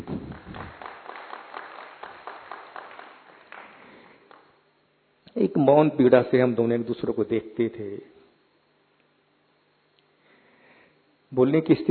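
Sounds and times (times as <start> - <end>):
audience applause: 0.0 - 4.5
speech: 5.4 - 8.2, 11.4 - 11.8.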